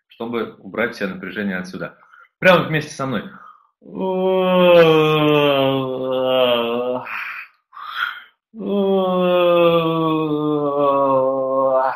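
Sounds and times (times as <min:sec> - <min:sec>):
speech: 0:00.2 - 0:06.2
people yawning: 0:03.9 - 0:11.9.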